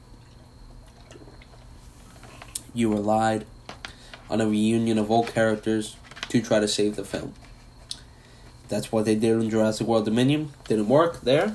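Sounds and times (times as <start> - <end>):
sipping a drink: 0.2 - 2.7
speech: 2.8 - 3.6, 4.3 - 7.4, 8.7 - 11.5.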